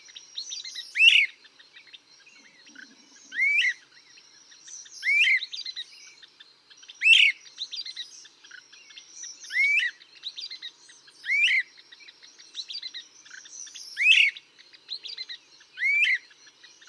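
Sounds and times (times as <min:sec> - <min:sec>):
Great Crested Flycatcher calling: 0:00.0 - 0:16.8.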